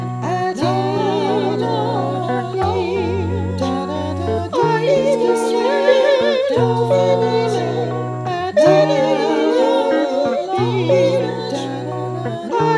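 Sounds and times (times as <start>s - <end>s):
guitar: 0.0s - 12.7s
voices: 0.0s - 12.7s.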